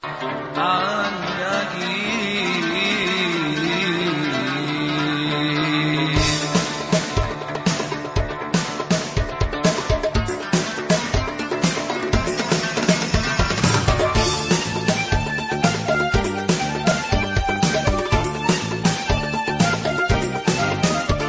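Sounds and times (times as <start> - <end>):
instrumental music: 0.0 - 21.2.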